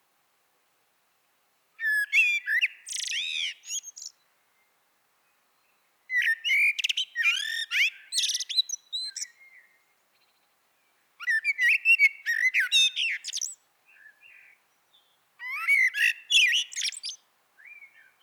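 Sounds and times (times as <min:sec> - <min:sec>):
Eurasian blackbird Turdus merula singing warbled phrases with scratchy twittering: 0:01.8 - 0:04.2, 0:05.6 - 0:10.4, 0:11.2 - 0:18.2.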